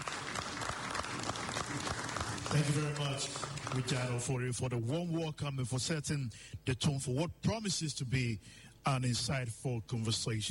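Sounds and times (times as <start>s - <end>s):
audience applause: 0.0s - 4.4s
speech: 2.5s - 10.5s.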